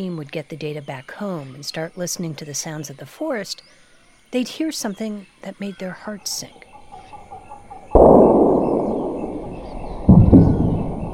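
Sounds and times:
speech: 0.0s - 6.7s
gunfire in the rainforest: 7.9s - 11.1s.

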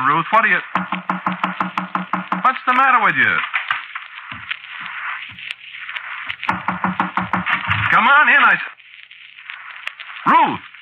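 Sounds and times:
speech: 0.0s - 2.0s, 2.6s - 3.6s, 8.0s - 8.7s
knocking on a door: 0.8s - 2.4s, 6.5s - 7.9s.

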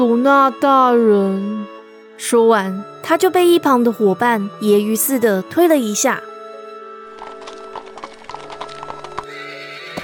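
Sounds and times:
speech: 0.0s - 6.3s
horse-drawn carriage hooves galloping away: 7.0s - 10.0s
horse whinnying: 9.1s - 10.0s.

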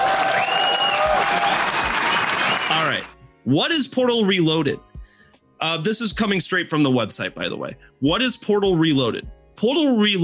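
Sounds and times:
applause: 0.0s - 3.2s
speech: 2.9s - 4.9s, 5.6s - 10.2s.

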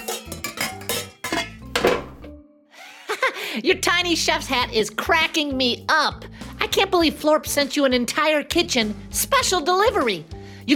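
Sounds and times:
metal baking sheet of chocolate chip cookies pulled from an oven: 0.0s - 2.3s
speech: 3.6s - 10.7s.

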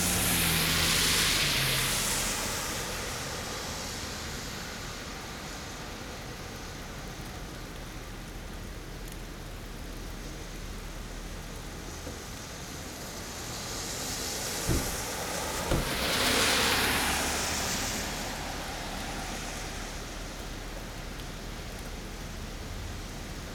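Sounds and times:
cars passing on a wet road on a rainy day: 0.0s - 23.5s.

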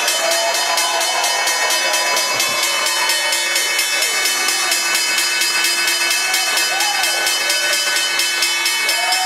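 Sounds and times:
stock exchange opening bell ringing: 0.0s - 9.2s.

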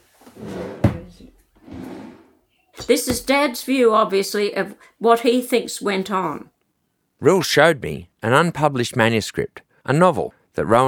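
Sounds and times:
drawer sliding open: 0.3s - 2.3s
speech: 2.9s - 6.6s, 7.2s - 10.8s.

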